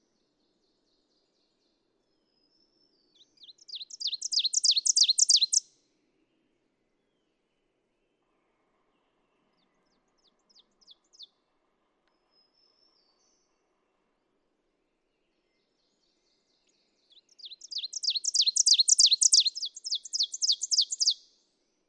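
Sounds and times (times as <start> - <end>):
Ovenbird song: 2.8 - 5.6, 15.9 - 21.2.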